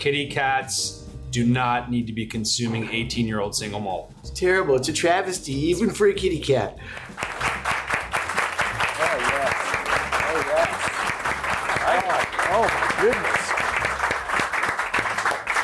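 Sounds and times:
speech: 0.0s - 7.4s
audience slow clap: 6.9s - 15.6s.

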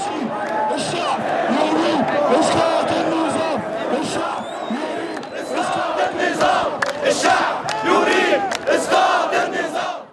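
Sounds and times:
large protest crowd chanting an Arab Spring slogan: 0.0s - 10.1s.

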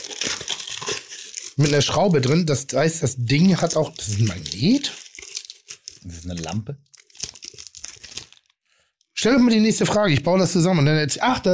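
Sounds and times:
gift box packaging crinkling and rustling: 0.0s - 9.2s
speech: 1.6s - 5.0s, 6.2s - 6.9s, 9.2s - 11.5s.

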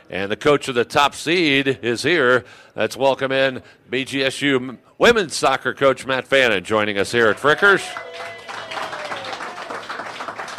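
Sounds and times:
speech: 0.1s - 8.4s
small group clapping: 7.2s - 10.5s.

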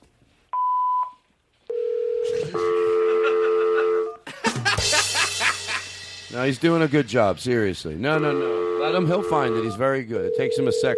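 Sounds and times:
short high telephone beep: 0.6s - 2.7s, 10.3s - 10.9s
sustained dual-pitched dial tone: 1.7s - 4.0s
laughter: 2.3s - 5.9s
speech: 6.3s - 10.9s.

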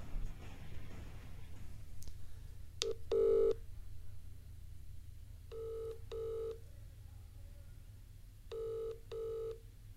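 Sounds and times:
low steady hum: 0.0s - 9.9s
outgoing phone ringing tone: 2.8s - 3.6s, 5.5s - 6.6s, 8.5s - 9.6s.

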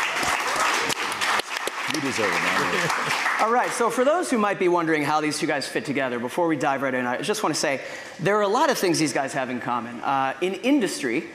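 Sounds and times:
audience applause: 0.0s - 4.0s
speech: 1.9s - 11.3s.

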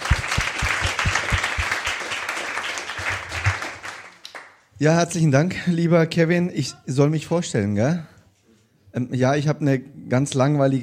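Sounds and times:
audience applause: 0.0s - 4.5s
speech: 4.8s - 8.1s, 9.0s - 10.8s.

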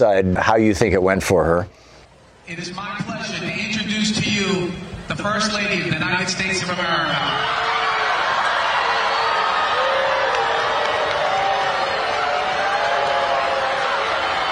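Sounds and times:
speech: 0.0s - 1.9s, 2.5s - 7.7s
crowd booing: 7.0s - 14.4s
audience applause: 7.5s - 14.4s.

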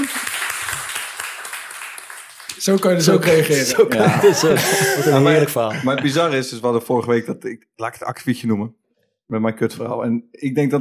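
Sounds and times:
audience clapping for a storyteller at a live show: 0.0s - 5.6s
speech: 2.6s - 10.7s
laughter: 3.0s - 6.6s.

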